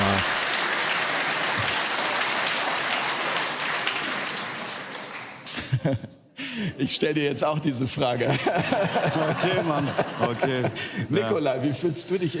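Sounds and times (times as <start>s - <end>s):
audience applause: 0.0s - 5.5s
laughter: 5.5s - 6.2s, 8.2s - 11.3s
speech: 5.8s - 12.3s.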